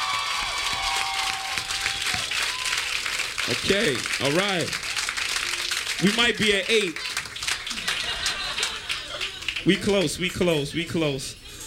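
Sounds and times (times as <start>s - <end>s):
whoops and high shouts: 0.0s - 2.9s
crowd applauding and cheering: 0.0s - 10.2s
speech: 3.5s - 4.9s, 6.0s - 7.1s, 9.6s - 11.4s
laughter: 7.6s - 10.0s.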